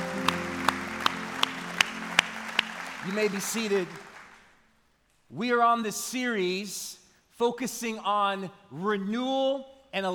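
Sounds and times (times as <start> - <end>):
church congregation clapping rhythmically: 0.0 - 4.6
sustained music: 0.0 - 4.6
speech: 3.1 - 4.1, 5.3 - 10.1.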